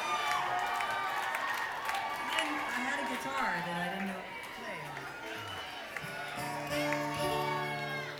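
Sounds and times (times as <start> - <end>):
applause: 0.0 - 8.1.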